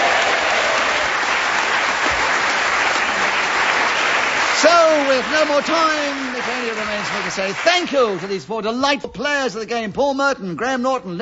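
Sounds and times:
studio audience applause: 0.0 - 8.5
speech: 5.1 - 11.1.

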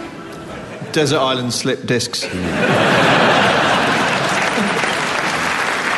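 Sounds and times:
laughter: 0.4 - 1.1, 2.2 - 5.5
speech: 0.9 - 3.1
audience clapping: 3.2 - 5.9.

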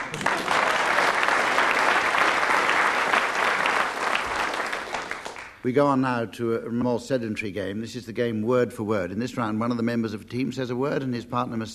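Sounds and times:
studio audience applause at a comedy panel game: 0.0 - 5.6
speech: 5.6 - 11.7.

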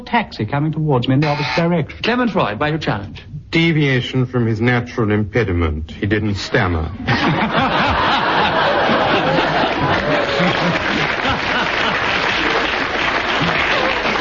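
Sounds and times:
speech: 0.1 - 8.2
laughter: 7.1 - 12.8
audience applause: 8.2 - 14.1.

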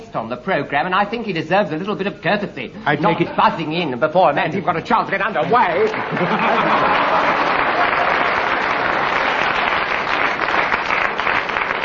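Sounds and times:
speech: 0.1 - 7.5
laughter: 2.8 - 8.7
studio audience round of applause: 5.2 - 11.8.

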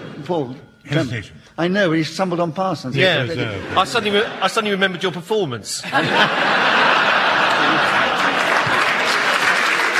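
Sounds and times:
laughter: 0.0 - 1.3, 3.0 - 9.9
speech: 0.3 - 6.9
audience applause: 6.4 - 9.9.

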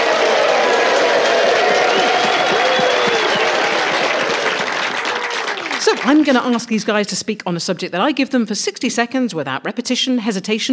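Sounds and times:
audience applause: 0.0 - 6.6
speech: 6.0 - 10.7.

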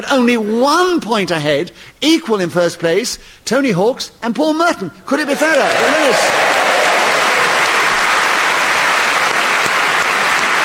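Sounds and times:
speech: 0.1 - 6.5
audience applause: 5.2 - 10.6.

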